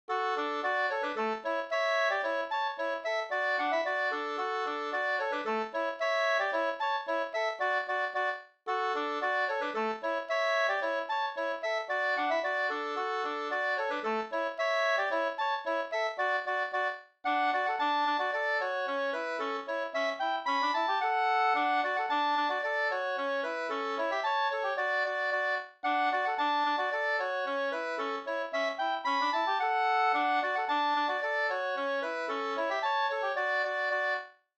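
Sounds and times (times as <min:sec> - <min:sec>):
polka music: 0:00.1 - 0:34.4.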